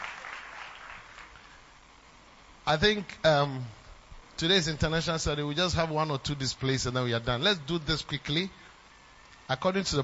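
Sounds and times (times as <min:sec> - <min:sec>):
audience clapping: 0:00.0 - 0:01.5
speech: 0:02.7 - 0:03.8, 0:04.4 - 0:08.6, 0:09.5 - 0:10.0.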